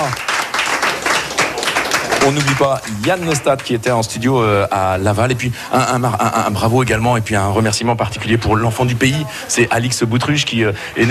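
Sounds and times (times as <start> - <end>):
crowd applauding: 0.0 - 4.5
speech: 2.2 - 11.0.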